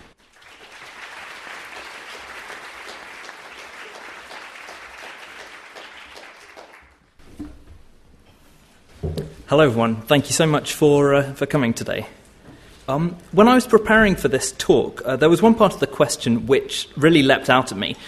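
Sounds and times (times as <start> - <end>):
audience applause at a book festival talk: 0.0 - 7.1
speech: 9.5 - 12.2, 12.9 - 18.0.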